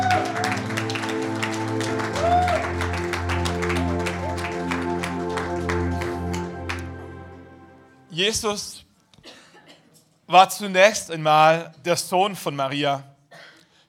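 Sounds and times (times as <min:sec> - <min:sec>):
audience applause: 0:00.0 - 0:07.6
speech: 0:08.2 - 0:08.8, 0:10.3 - 0:13.1.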